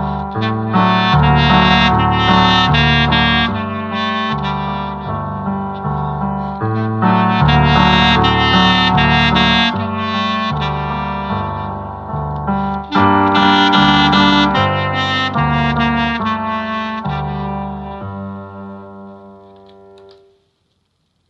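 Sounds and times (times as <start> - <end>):
clarinet playing with solo: 0.0 - 20.2.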